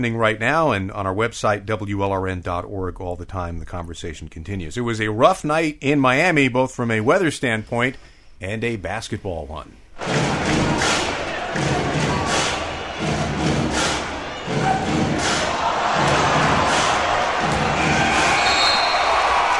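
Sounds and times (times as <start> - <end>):
speech: 0.0 - 10.7
arena crowd groaning: 10.0 - 19.5.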